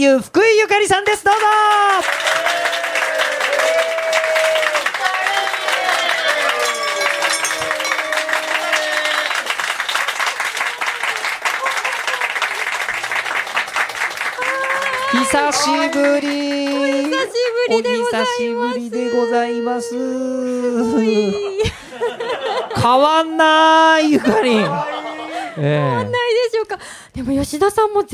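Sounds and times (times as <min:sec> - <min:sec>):
speech: 0:00.0 - 0:02.8, 0:15.2 - 0:24.9, 0:25.6 - 0:28.1
cheers: 0:01.3 - 0:17.4, 0:24.3 - 0:26.1
sustained audience applause welcoming a guest: 0:01.3 - 0:17.5
laughter: 0:04.9 - 0:09.6, 0:10.2 - 0:13.1, 0:20.7 - 0:26.4.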